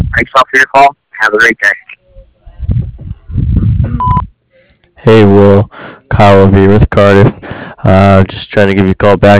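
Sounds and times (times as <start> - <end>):
speech: 0.2 - 1.8, 5.0 - 9.3
answering machine beep: 3.9 - 4.3.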